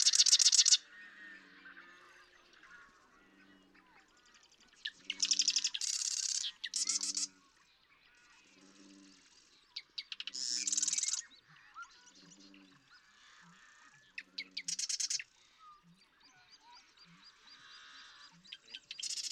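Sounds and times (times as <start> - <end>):
marsh wren song: 0.0 - 0.8, 4.8 - 7.3, 10.0 - 11.2, 14.6 - 15.2, 18.8 - 19.3.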